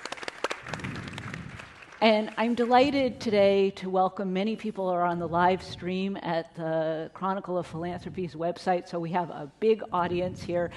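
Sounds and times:
audience applause: 0.0 - 2.0
speech: 2.0 - 10.7.

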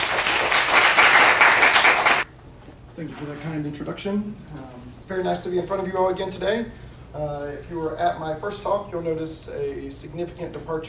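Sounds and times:
audience applause welcoming a professor: 0.0 - 2.2
speech: 3.0 - 10.8.

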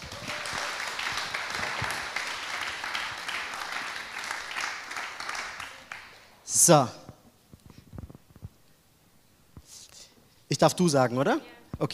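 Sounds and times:
audience applause: 0.0 - 6.2
speech: 6.6 - 7.0, 10.6 - 11.9.

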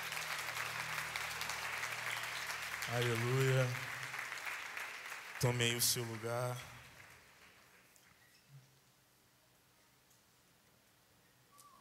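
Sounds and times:
audience applauding: 0.0 - 8.1
speech: 2.9 - 3.9, 5.4 - 6.8.

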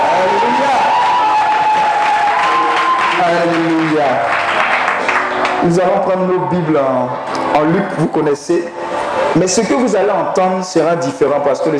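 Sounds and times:
audience applauding and cheering: 0.0 - 5.9
speech: 5.6 - 11.7.

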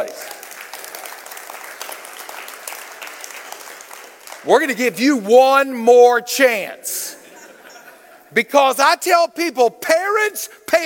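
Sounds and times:
audience applause: 0.0 - 4.7
speech: 4.4 - 7.0, 8.3 - 10.8
laughter: 7.1 - 8.3.

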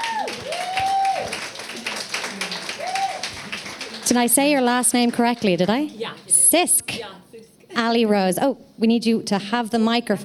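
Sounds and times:
people cheering: 0.0 - 4.2
audience clapping: 0.0 - 6.0
speech: 4.1 - 7.2, 7.8 - 10.2.

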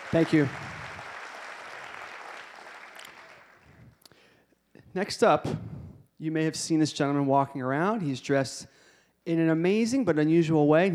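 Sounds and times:
audience applause: 0.0 - 3.8
speech: 0.1 - 0.6, 5.0 - 10.9.

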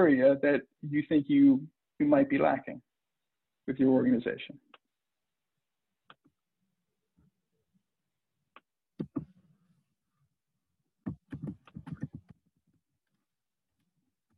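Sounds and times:
speech: 0.0 - 2.9, 3.7 - 4.7
person typing on a keyboard: 9.0 - 9.3, 11.1 - 12.4.

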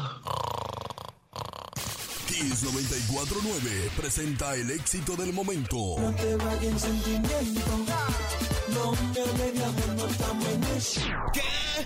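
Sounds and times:
person who has dozed off snoring: 0.0 - 2.0
speech: 2.3 - 11.8.

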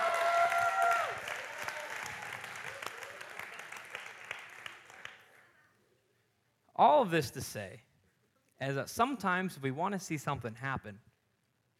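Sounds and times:
audience applause: 0.0 - 5.4
speech: 6.8 - 7.9, 8.6 - 11.1.

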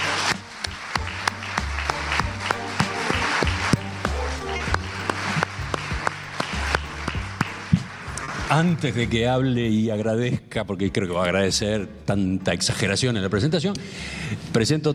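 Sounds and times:
audience applause: 0.0 - 8.9
speech: 8.5 - 14.9.

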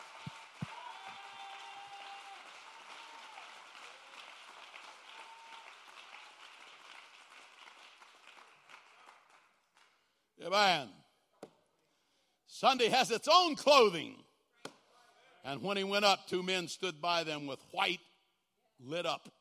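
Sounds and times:
audience clapping hands: 0.0 - 10.0
whoops: 0.3 - 4.1, 4.9 - 6.3
speech: 10.4 - 11.0, 12.6 - 14.2, 15.4 - 18.1, 18.8 - 19.3.

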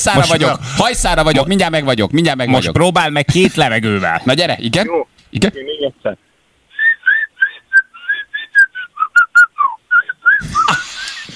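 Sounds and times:
speech: 0.0 - 6.3
person whistling a song melody: 6.8 - 10.8.

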